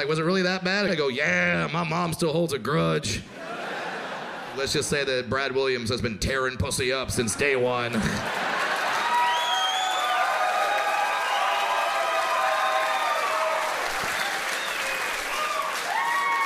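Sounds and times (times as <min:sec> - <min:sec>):
speech: 0:00.0 - 0:03.7, 0:04.6 - 0:08.6
laughter: 0:03.3 - 0:05.0, 0:07.6 - 0:09.3
audience applauding: 0:08.2 - 0:16.4
audience whoops and cheering voices: 0:08.9 - 0:16.4.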